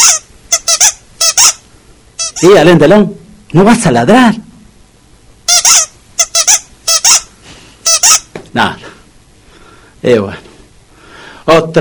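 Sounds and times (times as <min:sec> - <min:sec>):
squeaky toy being squeezed: 0:00.0 - 0:01.6, 0:02.2 - 0:02.5, 0:05.5 - 0:08.3
speech: 0:02.4 - 0:04.5, 0:08.5 - 0:08.8, 0:10.0 - 0:10.5, 0:11.5 - 0:11.7.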